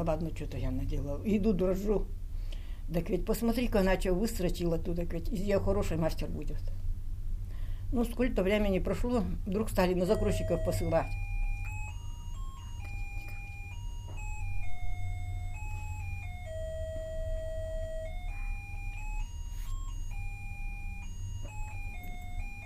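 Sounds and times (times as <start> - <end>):
speech: 0.0 - 2.2, 2.9 - 6.8, 7.9 - 11.2
chiming clock playing a slow melody of bell-like notes: 10.0 - 22.6
steady low rumble: 14.2 - 19.3.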